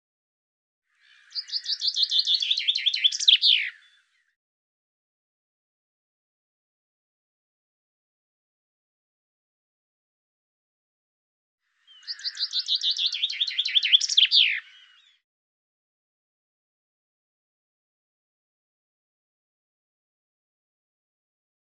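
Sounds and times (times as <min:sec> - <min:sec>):
bird singing: 0:00.9 - 0:04.4, 0:11.7 - 0:15.2.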